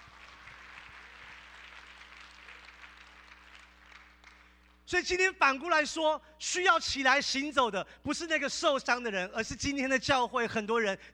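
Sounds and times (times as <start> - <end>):
audience clapping: 0.0 - 4.8
low electrical hum: 0.0 - 11.1
speech: 4.9 - 11.1.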